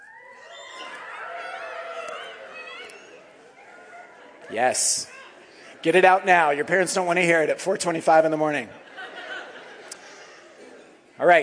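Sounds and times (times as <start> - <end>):
group of children imitating rooster crows: 0.0 - 4.3
laughter: 0.4 - 11.2
speech: 4.5 - 5.2, 5.8 - 8.8, 11.2 - 11.4.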